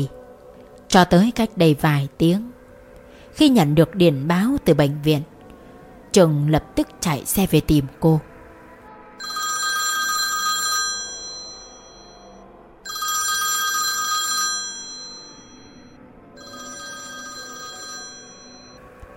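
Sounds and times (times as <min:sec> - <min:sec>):
speech: 0:00.9 - 0:02.6, 0:03.4 - 0:05.3, 0:06.1 - 0:08.3
telephone ringing with buzzy electronic trill: 0:09.2 - 0:18.9.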